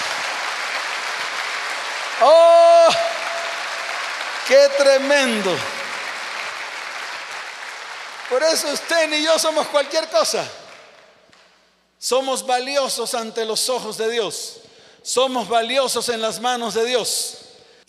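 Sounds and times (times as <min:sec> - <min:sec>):
audience applause: 0:00.0 - 0:11.1
speech: 0:02.2 - 0:02.5, 0:04.5 - 0:05.7, 0:08.3 - 0:10.6, 0:12.0 - 0:17.8.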